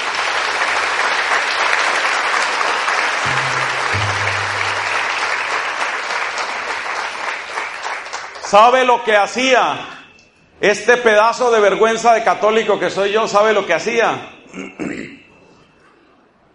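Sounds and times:
large audience applause: 0:00.0 - 0:08.4
speech: 0:08.5 - 0:10.0, 0:10.6 - 0:14.9.

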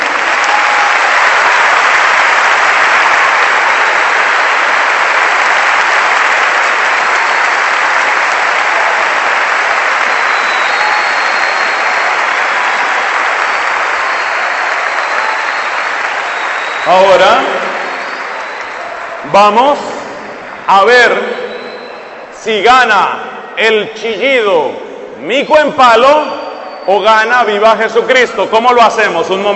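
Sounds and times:
audience applause: 0:00.0 - 0:20.7
speech: 0:19.3 - 0:19.9, 0:20.7 - 0:21.4, 0:22.4 - 0:26.3, 0:26.9 - 0:29.5.

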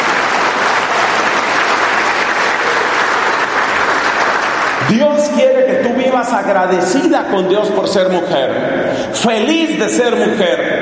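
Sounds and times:
audience applause: 0:00.0 - 0:05.3
speech: 0:04.9 - 0:10.8.

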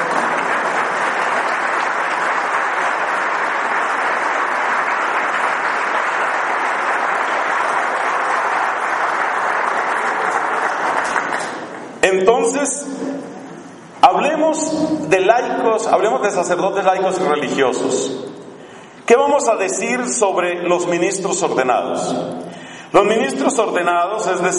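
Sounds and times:
large crowd applause for the nuns: 0:00.0 - 0:12.0
speech: 0:12.0 - 0:13.1, 0:14.3 - 0:18.2, 0:19.1 - 0:24.5.

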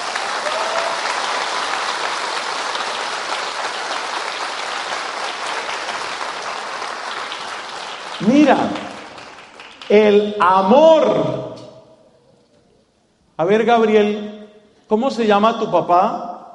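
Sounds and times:
audience applause: 0:00.0 - 0:10.3
speech: 0:08.2 - 0:08.8, 0:09.9 - 0:11.4, 0:13.4 - 0:14.3, 0:14.9 - 0:16.2.

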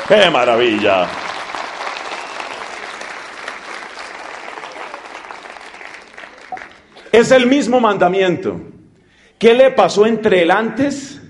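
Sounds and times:
audience applause: 0:00.0 - 0:07.0
speech: 0:00.1 - 0:01.2, 0:07.1 - 0:08.7, 0:09.4 - 0:11.2.

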